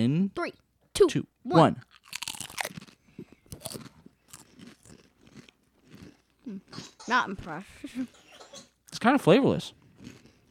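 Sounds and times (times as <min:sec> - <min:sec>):
speech: 0:00.0 - 0:02.0, 0:06.5 - 0:08.2, 0:09.0 - 0:09.8
sour cream and onion potato chip bitten and chewed: 0:01.8 - 0:06.3.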